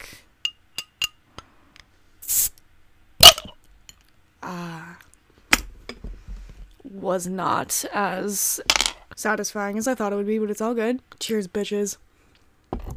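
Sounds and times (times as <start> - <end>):
glass beer bottle being opened: 3.2 - 3.6
speech: 7.0 - 12.0.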